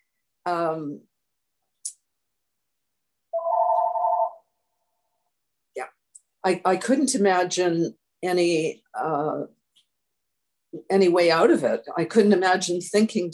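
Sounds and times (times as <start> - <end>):
speech: 0.5 - 1.1, 5.8 - 9.6, 10.7 - 13.3
mobile phone ringing: 3.4 - 4.5.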